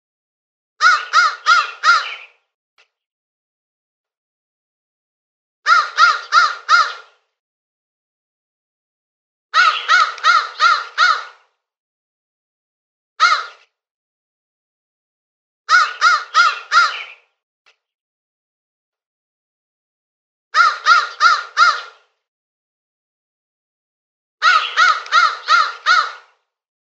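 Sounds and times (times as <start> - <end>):
crow cawing: 0.8 - 2.3, 5.7 - 7.2, 9.6 - 11.5, 13.2 - 13.6, 15.7 - 17.2, 20.6 - 22.1, 24.4 - 26.4.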